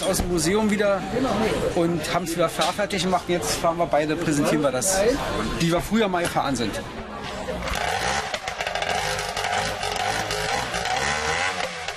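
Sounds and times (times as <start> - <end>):
speech: 0.0 - 7.0
racing boat engine roaring: 7.6 - 11.9.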